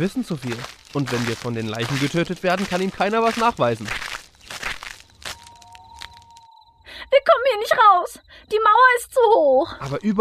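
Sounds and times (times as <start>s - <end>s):
speech: 0.0s - 4.1s, 7.7s - 10.1s
footsteps crunching on gritty ground along a cemetery wall: 0.0s - 6.5s, 9.8s - 10.1s.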